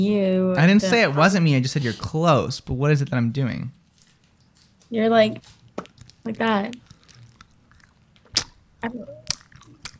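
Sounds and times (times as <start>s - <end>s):
speech: 0.0s - 3.8s, 4.9s - 5.6s, 6.2s - 6.8s, 8.8s - 9.2s
bubblegum chewing mouth smacks: 6.8s - 9.9s
squeaky tone: 8.8s - 9.3s.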